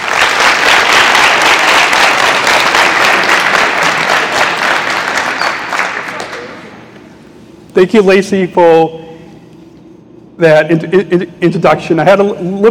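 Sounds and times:
crowd applause: 0.0 - 6.8
speech: 7.8 - 9.1, 10.4 - 12.6.

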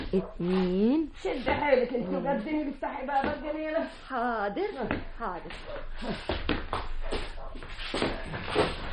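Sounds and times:
speech: 0.1 - 7.2
dog barking: 7.0 - 8.7.

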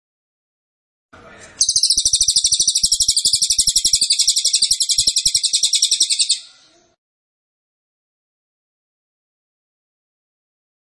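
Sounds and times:
pygmy bushtit twittering trill: 1.6 - 6.6.

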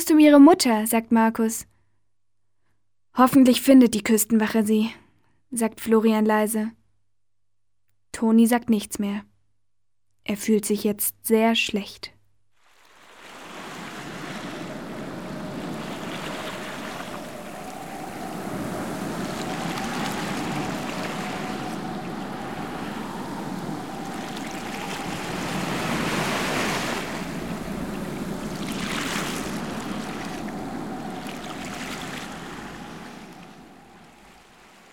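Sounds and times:
speech: 0.1 - 1.7, 3.2 - 6.8, 8.1 - 9.3, 10.2 - 12.2
ocean waves breaking on a beach: 12.6 - 34.9.

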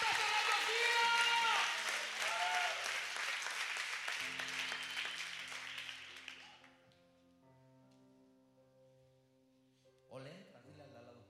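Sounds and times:
church congregation applauding: 0.0 - 6.8.

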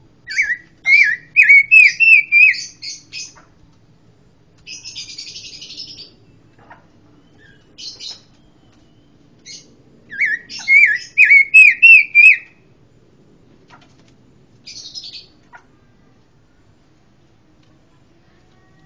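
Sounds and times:
pancawarna songbird singing wavering whistled notes, buzzy chirps and rasping trill: 0.2 - 3.5, 4.6 - 6.5, 7.2 - 12.6, 14.6 - 15.3.

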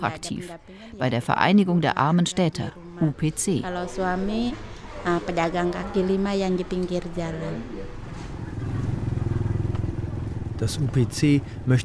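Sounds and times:
speech: 0.0 - 8.0, 10.6 - 11.8
motorcycle riding off through Jakarta, Indonesia with a low pulsing rumble: 3.7 - 11.8.

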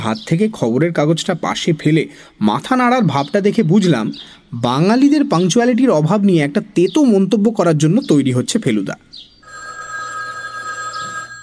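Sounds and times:
speech: 0.0 - 9.3
telephone ringing with bright steady electronic ring: 9.4 - 11.4.

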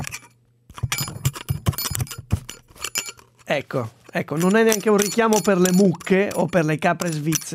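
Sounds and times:
loose little piece of a headphone tinkling and clinking: 0.0 - 3.5, 4.1 - 7.5
speech: 3.5 - 7.5.

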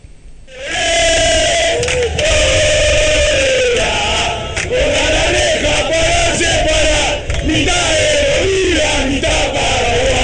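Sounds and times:
San Lorenzo football supporters chanting at Boca fans: 0.5 - 10.2.

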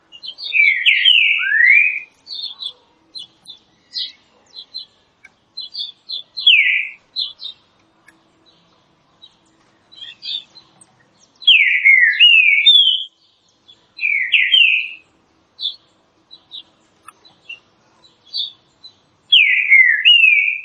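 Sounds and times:
green-winged saltator song: 0.1 - 7.6, 9.9 - 10.7, 11.4 - 15.0, 18.2 - 20.6.

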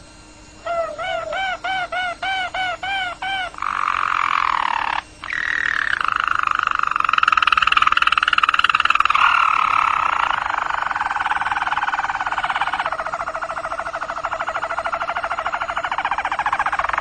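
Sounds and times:
roller canary giving long low rolling trills: 0.6 - 16.9.

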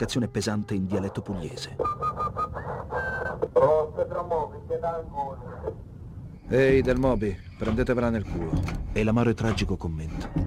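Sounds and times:
speech: 0.0 - 2.4, 3.6 - 4.0, 4.8 - 5.8, 6.5 - 10.4
person whistling over radio transmission: 1.6 - 3.6.

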